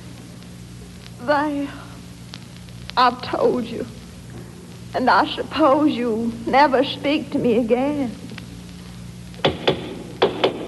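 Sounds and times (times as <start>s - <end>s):
speech: 1.2s - 1.9s, 3.0s - 4.0s, 4.9s - 8.2s
knocking on a door: 9.4s - 10.6s.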